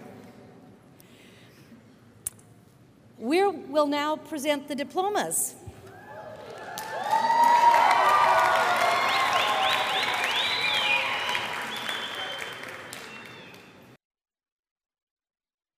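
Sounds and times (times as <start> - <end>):
speech: 3.2 - 5.6
cheers and whoops: 5.8 - 13.6
audience applause at graduation ceremony: 6.1 - 14.0.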